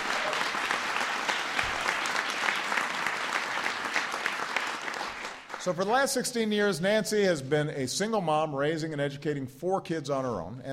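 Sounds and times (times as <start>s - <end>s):
large audience applause: 0.0s - 5.8s
speech: 5.6s - 10.7s.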